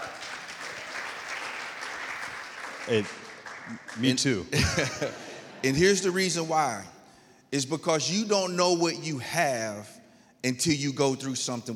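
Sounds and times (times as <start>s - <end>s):
audience clapping: 0.0s - 5.0s
speech: 2.9s - 11.7s
laughter: 4.5s - 6.2s.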